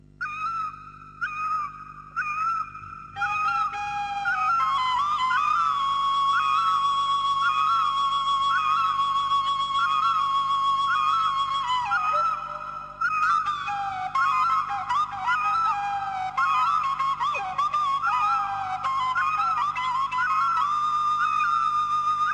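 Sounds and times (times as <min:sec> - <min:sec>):
Hmong flute playing: 0:00.2 - 0:22.3.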